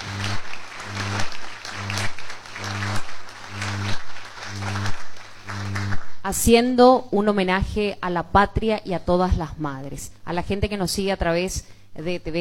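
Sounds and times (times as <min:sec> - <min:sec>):
crowd applauding: 0:00.0 - 0:06.2
low repeating hum or musical tone: 0:00.0 - 0:06.4
speech: 0:06.3 - 0:12.4.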